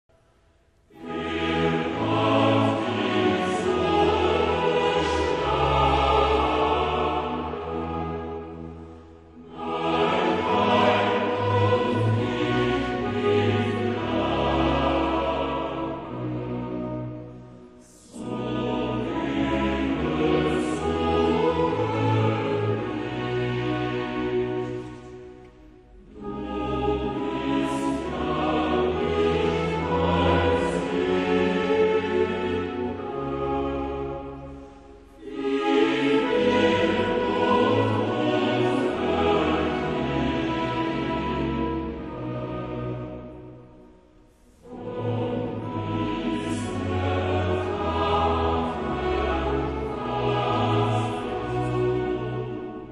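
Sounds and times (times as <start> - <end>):
chorale: 0.1 - 52.8.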